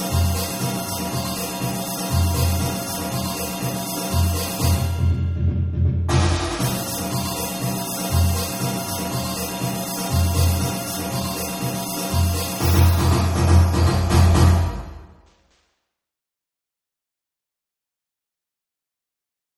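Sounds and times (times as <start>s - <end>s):
drums: 0.0s - 15.6s.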